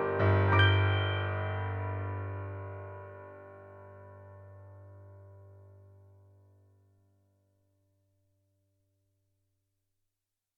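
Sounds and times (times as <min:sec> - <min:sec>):
horror piano music: 0:00.0 - 0:06.3.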